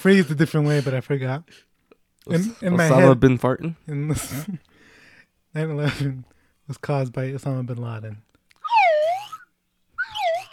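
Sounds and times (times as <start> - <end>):
speech: 0.0 - 4.7, 5.5 - 8.3
slide whistle: 8.6 - 10.5.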